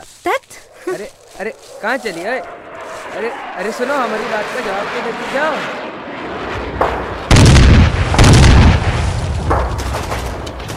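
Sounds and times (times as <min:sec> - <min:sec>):
speech: 0:01.0 - 0:05.8
heavy homemade bomb blasts: 0:04.3 - 0:10.7.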